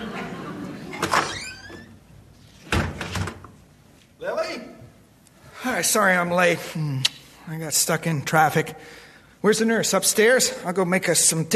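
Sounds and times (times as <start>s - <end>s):
laughter: 0.0s - 1.2s
door opening and closing: 0.9s - 3.6s
speech: 5.8s - 11.5s.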